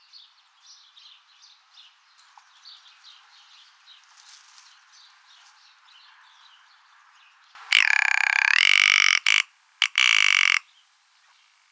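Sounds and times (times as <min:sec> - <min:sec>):
rock ptarmigan singing: 0:07.6 - 0:10.6.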